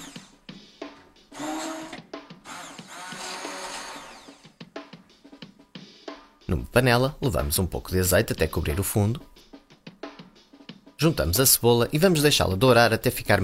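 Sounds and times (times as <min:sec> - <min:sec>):
immersion blender blending broth: 0:00.0 - 0:00.4, 0:01.3 - 0:04.6
speech: 0:06.5 - 0:09.3, 0:11.0 - 0:13.4.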